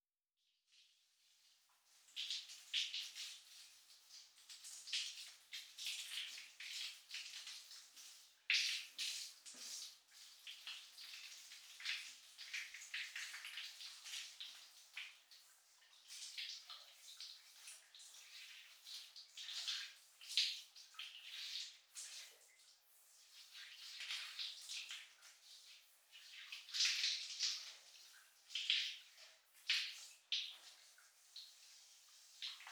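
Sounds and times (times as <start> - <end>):
shower running: 1.2 - 32.7.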